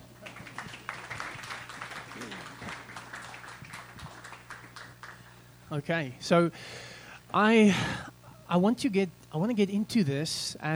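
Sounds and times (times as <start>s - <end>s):
audience applauding: 0.0s - 5.7s
speech: 5.7s - 10.7s.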